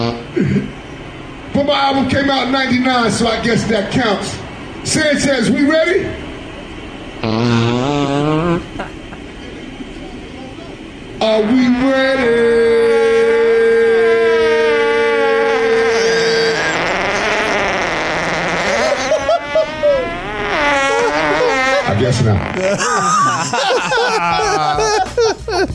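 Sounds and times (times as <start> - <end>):
speech: 0.1 - 0.8, 1.7 - 6.2, 7.2 - 8.9, 11.2 - 12.4, 22.6 - 25.7
fart sounds: 7.2 - 8.8, 11.2 - 23.1
laughter: 8.6 - 9.9, 18.5 - 25.7.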